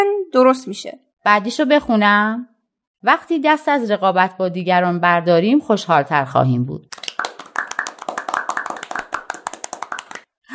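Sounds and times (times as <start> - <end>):
speech: 0.3 - 7.0
people clapping their hands: 6.9 - 10.5.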